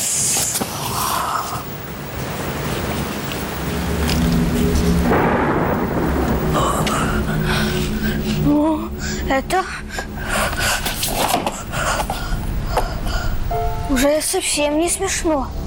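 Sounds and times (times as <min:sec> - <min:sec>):
rain pouring outside: 0:00.0 - 0:10.9
thunder rumbling: 0:01.8 - 0:15.6
speech: 0:09.3 - 0:09.8, 0:14.0 - 0:15.6.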